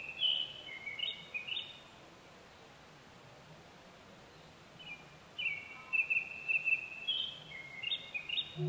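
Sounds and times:
Japanese thrush song: 0.0s - 1.7s, 4.8s - 8.6s.

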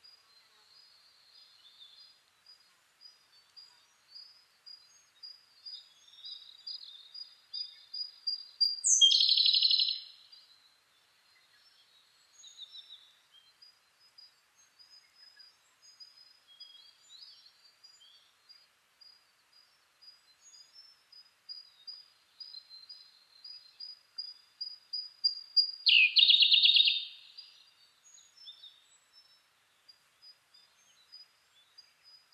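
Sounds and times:
Siberian blue robin song: 8.6s - 10.1s, 25.0s - 27.5s.

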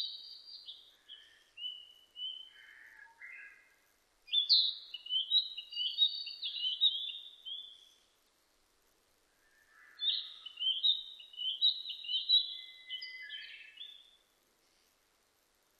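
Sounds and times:
Narcissus flycatcher singing varied whistles and trills: 0.0s - 2.6s, 4.3s - 8.0s, 9.8s - 14.2s.

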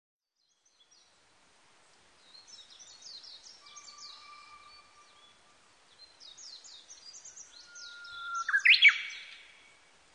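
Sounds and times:
Japanese bush warbler song: 0.2s - 10.1s.

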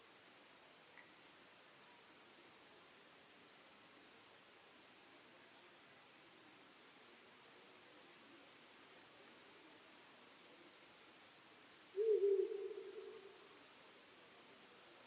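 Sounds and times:
owl hooting: 11.9s - 13.5s.

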